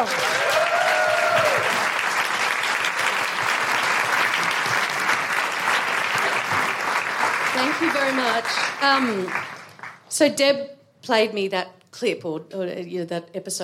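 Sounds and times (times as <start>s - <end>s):
audience applauding a performer: 0.0s - 10.1s
woohoo cries: 0.4s - 1.8s
speech: 7.6s - 9.5s, 10.1s - 13.6s.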